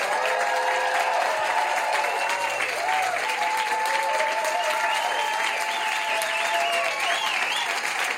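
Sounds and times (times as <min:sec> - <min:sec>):
cheering and whistling: 0:00.0 - 0:08.1
live audience applause: 0:00.0 - 0:08.1.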